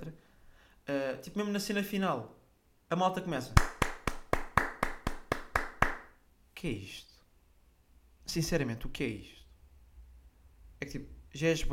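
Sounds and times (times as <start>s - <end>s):
speech: 1.2s - 3.7s, 6.6s - 7.1s, 8.3s - 9.4s, 10.8s - 11.7s
hand claps: 3.6s - 6.2s.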